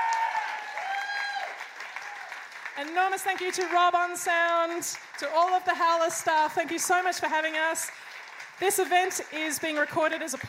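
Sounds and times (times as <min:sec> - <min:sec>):
audience applause: 0:00.0 - 0:10.4
speech: 0:02.8 - 0:10.4.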